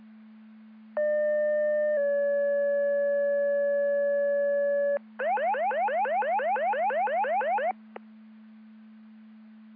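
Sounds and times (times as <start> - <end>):
siren: 1.0 - 7.7.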